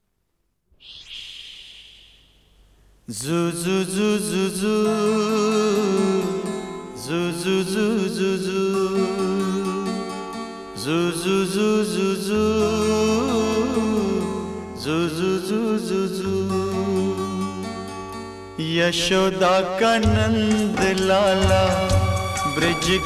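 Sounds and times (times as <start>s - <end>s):
man's voice: 3.1s - 10.1s, 10.8s - 17.7s, 18.6s - 23.0s.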